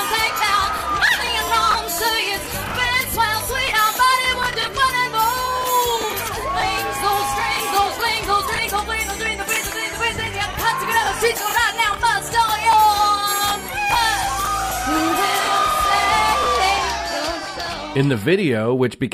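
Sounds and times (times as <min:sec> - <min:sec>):
crowd reacting and cheering: 0:00.0 - 0:18.4
speech: 0:18.0 - 0:19.1.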